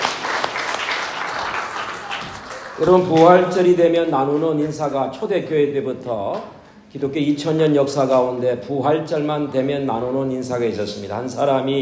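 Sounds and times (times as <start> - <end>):
church congregation applauding at an Easter service: 0.0 - 3.5
speech: 2.8 - 11.8.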